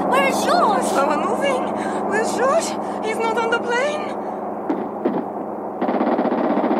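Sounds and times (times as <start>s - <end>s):
speech: 0.2s - 4.2s
automatic gunfire: 4.7s - 6.7s
gunshots: 4.7s - 6.7s.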